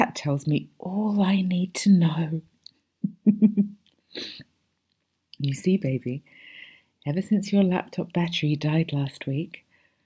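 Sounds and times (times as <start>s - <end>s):
speech: 0.2s - 2.5s, 5.4s - 6.4s, 7.0s - 9.6s
sharp gasping breath: 6.3s - 7.0s.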